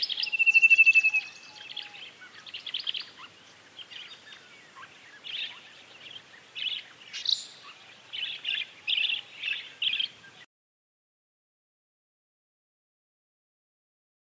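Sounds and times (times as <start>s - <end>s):
black crested coquette hummingbird: 0.0s - 10.4s.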